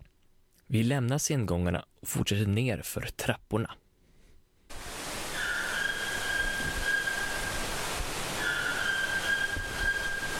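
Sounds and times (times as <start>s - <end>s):
speech: 0.7s - 3.8s
hissing rainforest background: 4.7s - 10.3s
white-throated toucan calling in rainforest: 5.3s - 7.6s, 8.4s - 10.3s.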